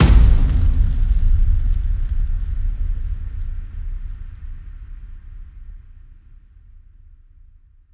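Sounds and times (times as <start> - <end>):
impact: 0.0 - 4.8.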